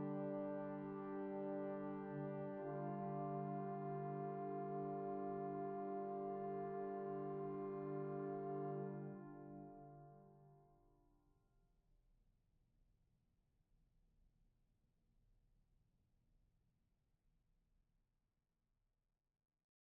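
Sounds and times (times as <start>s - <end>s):
flute tune: 0.0s - 10.1s
organ playing: 0.0s - 10.3s.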